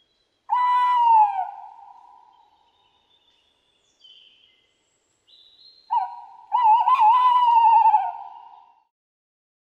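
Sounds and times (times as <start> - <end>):
breeding tawny owl giving a tremulous hoot: 0.5 - 2.4, 5.9 - 8.8.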